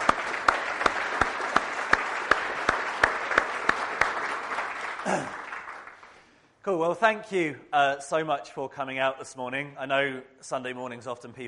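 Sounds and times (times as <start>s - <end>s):
audience applause: 0.0s - 6.2s
speech: 5.1s - 5.4s, 6.6s - 11.4s.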